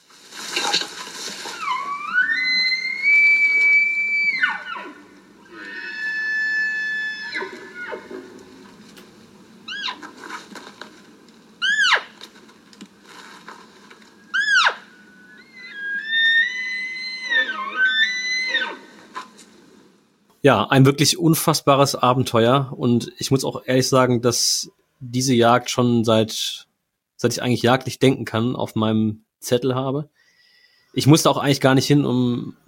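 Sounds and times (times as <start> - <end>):
maral red deer stags whistling: 1.5 - 8.2, 11.6 - 12.1, 14.2 - 18.9
speech: 20.4 - 26.6, 27.2 - 30.2, 30.9 - 32.6.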